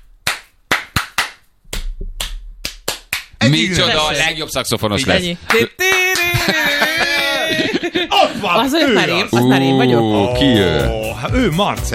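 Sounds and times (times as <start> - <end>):
hands clapping: 0.2 - 3.4, 5.4 - 6.7
speech: 3.5 - 6.6, 7.9 - 11.9
laughter: 5.5 - 10.9.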